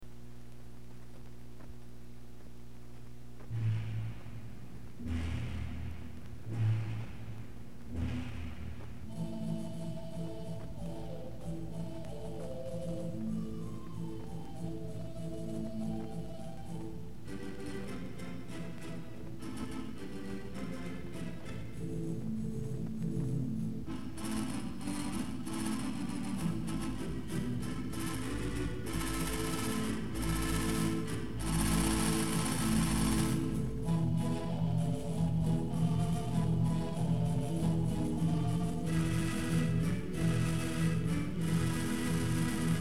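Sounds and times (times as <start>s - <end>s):
theater organ: 3.4s - 42.7s.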